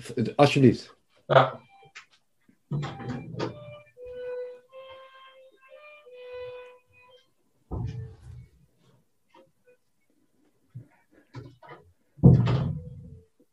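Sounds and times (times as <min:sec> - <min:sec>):
speech: 0:00.0 - 0:01.6, 0:02.7 - 0:03.5
interior door being shut: 0:02.7 - 0:03.8, 0:07.7 - 0:08.2, 0:12.2 - 0:13.2
violin notes from a child playing downstairs: 0:02.7 - 0:08.6.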